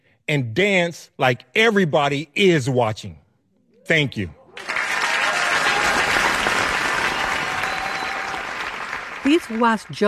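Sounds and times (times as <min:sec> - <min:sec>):
speech: 0:00.3 - 0:03.2, 0:03.9 - 0:04.4, 0:09.3 - 0:10.0
audience applause: 0:04.6 - 0:10.0.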